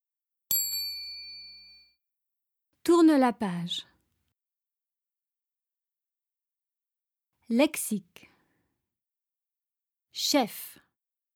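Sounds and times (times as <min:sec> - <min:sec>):
small bell chime signaling to turn the page: 0:00.5 - 0:02.0
speech: 0:02.9 - 0:03.9, 0:07.5 - 0:08.3, 0:10.2 - 0:10.8.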